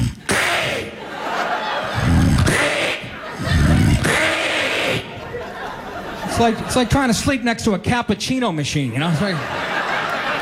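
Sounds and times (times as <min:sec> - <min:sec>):
laughter: 0:00.2 - 0:08.0, 0:08.9 - 0:10.3
person loudly mimicking snoring with their voice: 0:02.0 - 0:02.8, 0:03.4 - 0:04.4
speech: 0:06.4 - 0:09.6.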